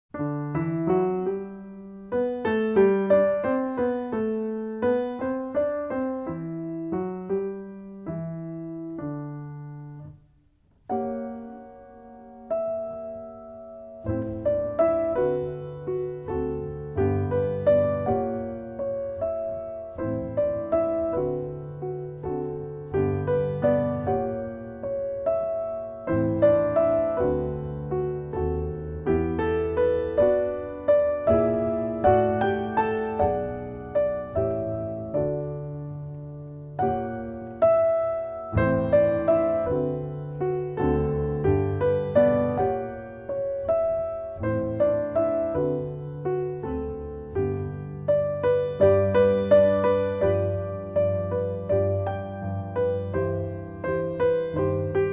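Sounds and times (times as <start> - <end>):
instrumental music: 0.1 - 55.1.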